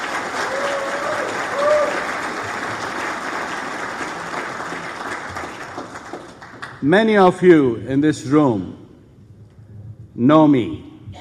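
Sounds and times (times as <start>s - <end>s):
audience applause: 0.0s - 6.8s
speech: 6.8s - 8.8s, 10.2s - 10.9s.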